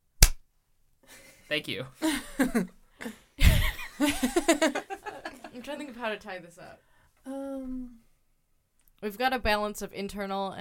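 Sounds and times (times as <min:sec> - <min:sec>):
hand clapping sound effect: 0:00.2 - 0:00.4
speech: 0:01.1 - 0:03.2, 0:04.0 - 0:04.9, 0:05.6 - 0:08.0, 0:09.0 - 0:10.5
laughter: 0:02.0 - 0:05.7.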